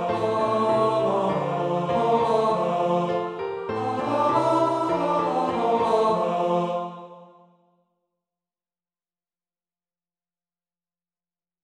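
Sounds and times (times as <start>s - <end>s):
tenor singing: 0.0s - 7.3s.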